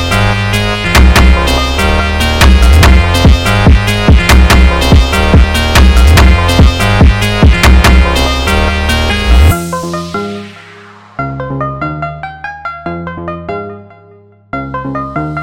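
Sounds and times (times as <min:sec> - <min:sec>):
sped up phonk mashup: 0:00.0 - 0:11.8.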